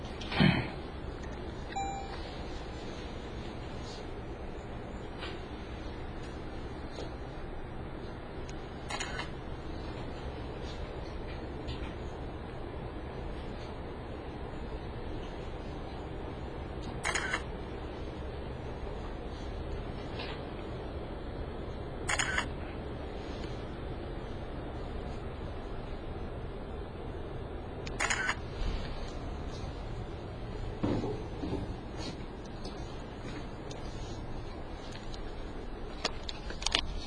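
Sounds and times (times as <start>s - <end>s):
low hum: 0.0s - 37.0s
camera shutter clicks: 8.9s - 9.3s, 17.0s - 17.4s, 22.1s - 22.5s, 27.9s - 28.4s.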